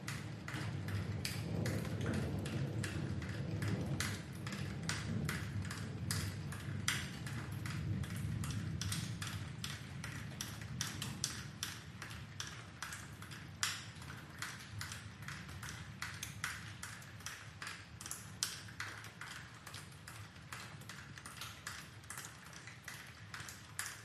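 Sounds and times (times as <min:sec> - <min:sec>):
rain dripping: 0:00.0 - 0:24.0
distant thunder rumble: 0:00.3 - 0:09.7.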